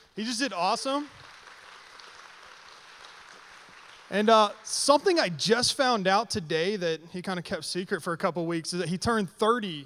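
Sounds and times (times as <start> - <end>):
speech: 0.2 - 1.3, 4.1 - 9.8
crowd applauding: 0.6 - 5.3.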